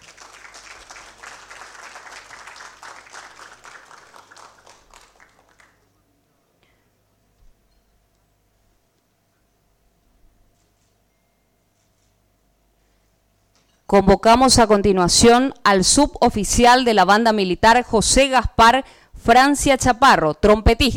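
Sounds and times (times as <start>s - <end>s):
audience applause: 0.0s - 5.9s
speech: 13.9s - 20.9s.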